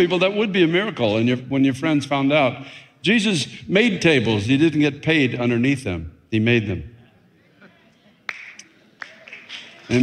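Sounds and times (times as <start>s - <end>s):
speech: 0.0s - 6.9s, 9.9s - 10.0s
weak golf clap from a sermon audience: 8.3s - 10.0s.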